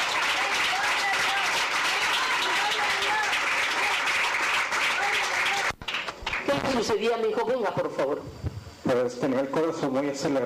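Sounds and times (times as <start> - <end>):
voices shouting and calling out: 0.0 - 4.2
crowd clapping and cheering: 0.0 - 6.7
speech: 6.8 - 10.4.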